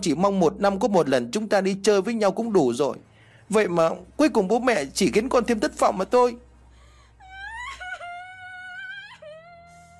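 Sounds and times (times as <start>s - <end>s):
speech: 0.0s - 6.4s
girl bursting into tears: 7.2s - 9.9s.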